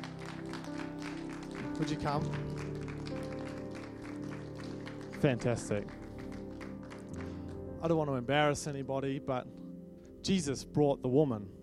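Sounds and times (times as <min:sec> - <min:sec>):
audience applauding: 0:00.0 - 0:07.6
speech: 0:01.8 - 0:02.6, 0:05.2 - 0:06.0, 0:07.8 - 0:09.6, 0:10.2 - 0:11.6.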